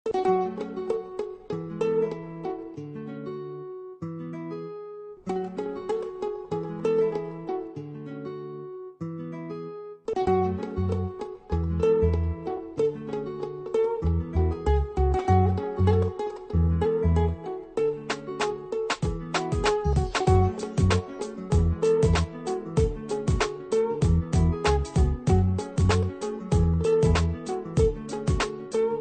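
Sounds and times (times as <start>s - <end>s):
instrumental music: 0.1s - 29.0s.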